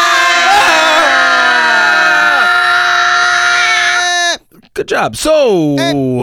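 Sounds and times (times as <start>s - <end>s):
people screaming loudly at secret word: 0.0s - 4.4s
speech: 4.8s - 6.2s.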